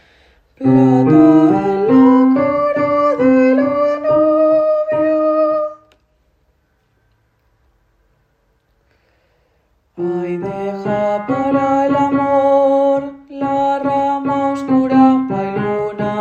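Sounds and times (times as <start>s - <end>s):
tenor singing: 0.6s - 5.9s, 10.0s - 16.2s.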